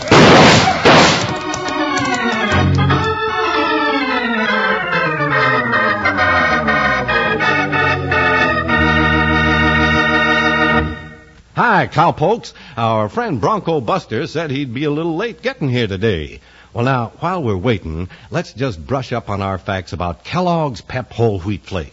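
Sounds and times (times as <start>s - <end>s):
gunfire in a radio western drama: 0.0s - 1.6s
orchestral music cue: 0.5s - 11.3s
speech: 11.8s - 21.9s.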